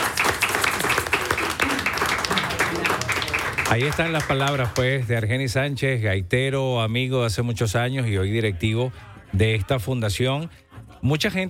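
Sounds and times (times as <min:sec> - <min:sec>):
audience applause: 0:00.0 - 0:05.0
speech: 0:03.7 - 0:11.4.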